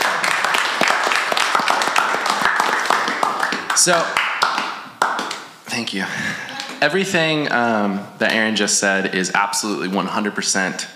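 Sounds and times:
audience applause: 0:00.0 - 0:05.3
speech: 0:03.8 - 0:04.2, 0:05.8 - 0:10.9.

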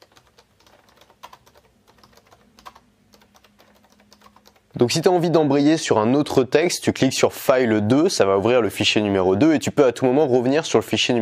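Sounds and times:
typing on an AlphaSmart Neo 2 keyboard: 0:00.0 - 0:04.8
speech: 0:04.7 - 0:11.2.

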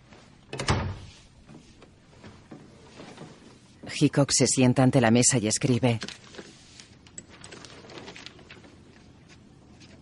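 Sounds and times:
door banging shut as someone leaves: 0:00.5 - 0:01.1
speech: 0:04.0 - 0:06.4.

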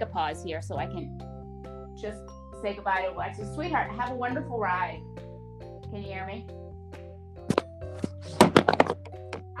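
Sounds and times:
speech: 0:00.0 - 0:01.4, 0:02.0 - 0:05.1, 0:05.9 - 0:06.6
phone dropped: 0:07.5 - 0:09.5.

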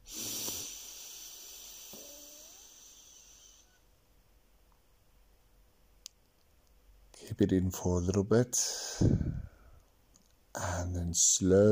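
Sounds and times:
deep breath drawn in through the nose: 0:00.0 - 0:03.8, 0:08.7 - 0:09.8
speech: 0:07.2 - 0:09.5, 0:10.6 - 0:11.7.

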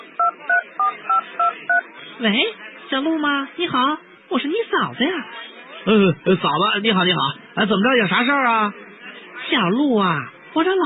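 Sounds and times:
phone keypad dialing tones: 0:00.2 - 0:01.8
speech: 0:02.2 - 0:08.9, 0:09.5 - 0:10.8.

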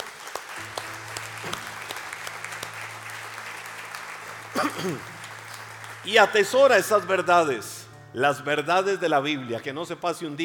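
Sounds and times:
audience applause: 0:00.0 - 0:07.7
speech: 0:04.6 - 0:05.2, 0:06.0 - 0:10.4.

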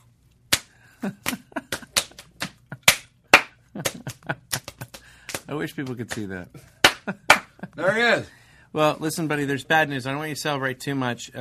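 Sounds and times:
rhythmic slapping of a slap dance: 0:00.5 - 0:07.8
speech: 0:01.0 - 0:01.4, 0:05.5 - 0:11.3.

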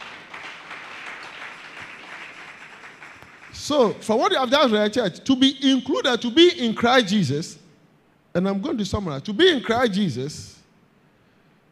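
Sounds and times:
audience clapping: 0:00.0 - 0:03.7
speech: 0:03.7 - 0:07.6, 0:08.4 - 0:10.5.

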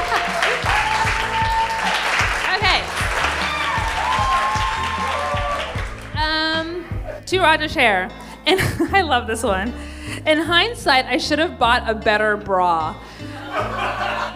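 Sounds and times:
laughter: 0:00.0 - 0:01.4, 0:13.3 - 0:14.3
audience applause: 0:00.0 - 0:06.2
speech: 0:07.3 - 0:13.7.

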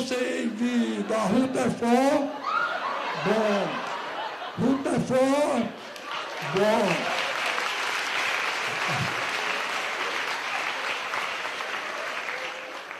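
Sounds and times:
laughter: 0:00.2 - 0:07.5, 0:08.6 - 0:09.7
speech: 0:00.6 - 0:02.5, 0:03.2 - 0:03.9, 0:04.6 - 0:05.8, 0:06.4 - 0:07.2
audience applause: 0:05.9 - 0:12.9.

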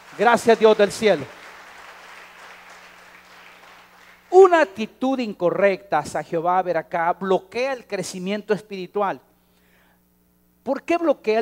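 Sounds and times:
audience applause: 0:00.0 - 0:04.3
speech: 0:00.1 - 0:01.4, 0:04.5 - 0:09.3, 0:10.6 - 0:11.4.

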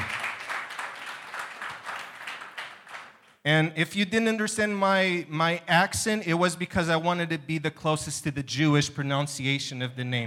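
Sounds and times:
audience applause: 0:00.0 - 0:03.2
speech: 0:03.4 - 0:10.2.

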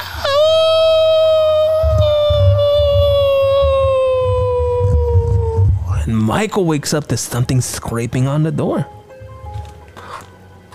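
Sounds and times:
howling outside in a film soundtrack: 0:00.0 - 0:06.1
tense film music: 0:00.1 - 0:06.8
speech: 0:06.3 - 0:09.0.

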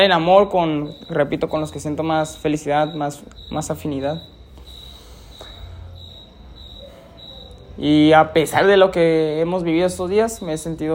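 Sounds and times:
speech: 0:00.0 - 0:04.4, 0:07.8 - 0:10.9
crickets chirping at night: 0:00.0 - 0:10.9
low continuous hum: 0:00.0 - 0:10.9.

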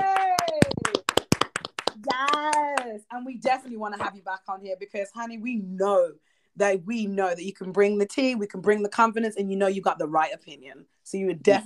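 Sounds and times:
person cheering: 0:00.0 - 0:01.0
small group clapping: 0:00.0 - 0:03.0
speech: 0:03.2 - 0:11.6.

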